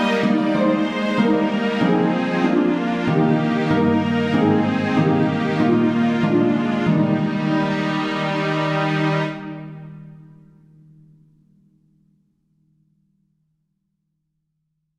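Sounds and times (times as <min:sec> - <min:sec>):
viola: 0:00.0 - 0:10.6
harp: 0:00.0 - 0:10.9.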